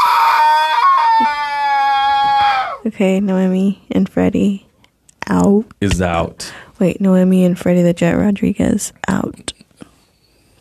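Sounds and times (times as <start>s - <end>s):
baby pterodactyl screech: 0.0s - 2.8s
speech: 2.9s - 4.7s, 5.3s - 9.5s.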